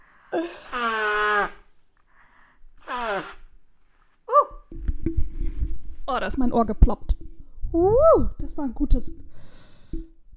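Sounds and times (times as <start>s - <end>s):
nose blowing: 0.0s - 1.8s, 2.8s - 3.6s
speech: 0.3s - 1.0s, 6.1s - 9.2s.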